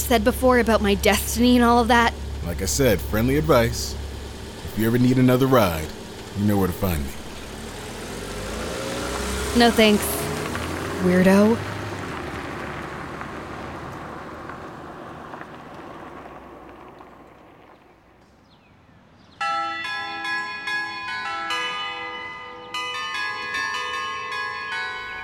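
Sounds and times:
speech: 0.1s - 4.0s, 4.8s - 7.2s, 9.5s - 10.2s, 11.0s - 11.7s
doorbell ringing: 19.4s - 25.2s.

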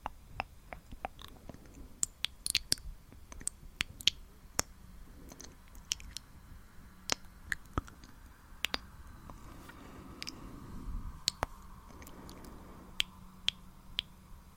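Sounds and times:
wet mouth clicks and pops made for ASMR: 0.0s - 4.7s, 5.3s - 6.3s, 7.0s - 9.4s, 11.2s - 14.1s
faint low steady hum: 0.0s - 14.5s
soft breathy passages: 0.0s - 14.5s.

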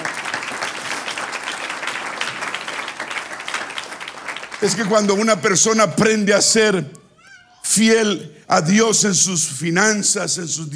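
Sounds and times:
audience applause: 0.0s - 5.6s
speech: 4.6s - 7.0s, 7.8s - 10.7s.

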